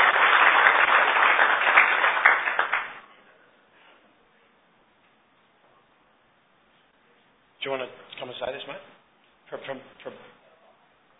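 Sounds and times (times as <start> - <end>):
small audience applause: 0.0 - 3.0
speech: 7.7 - 10.4.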